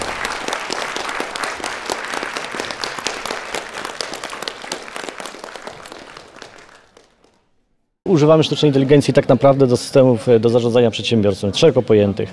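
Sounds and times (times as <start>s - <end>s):
audience applauding performers bowing at end of a stage show: 0.0s - 7.6s
speech: 8.1s - 12.3s.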